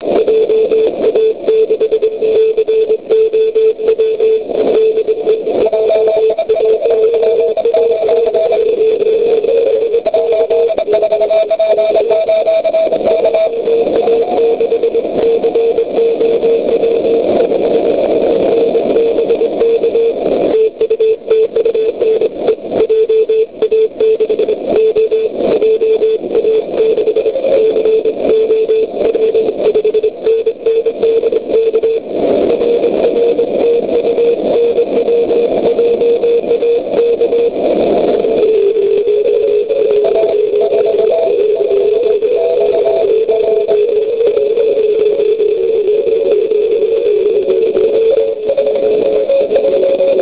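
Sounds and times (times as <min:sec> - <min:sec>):
CW Morse code beeps: 0:00.1 - 0:50.1.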